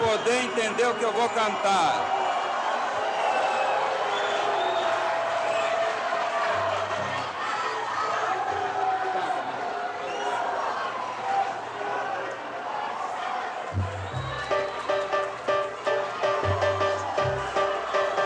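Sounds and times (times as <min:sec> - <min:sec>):
audience applauding: 0:00.0 - 0:08.2, 0:13.7 - 0:18.2
audience booing: 0:00.0 - 0:18.2
speech: 0:00.2 - 0:02.2.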